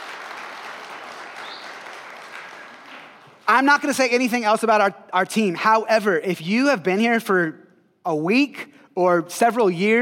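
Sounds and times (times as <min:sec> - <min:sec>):
audience clapping: 0:00.0 - 0:03.4
speech: 0:03.5 - 0:10.0.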